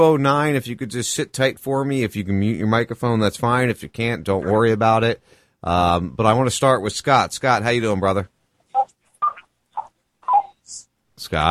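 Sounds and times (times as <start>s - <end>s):
speech: 0.0s - 8.9s, 10.7s - 11.4s
telephone dialing tones from an accidental call: 8.8s - 10.5s.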